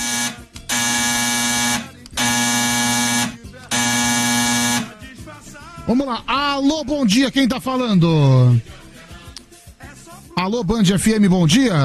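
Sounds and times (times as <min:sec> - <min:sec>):
telephone ringing: 0:00.0 - 0:05.0
speech: 0:05.9 - 0:08.8, 0:10.4 - 0:11.8.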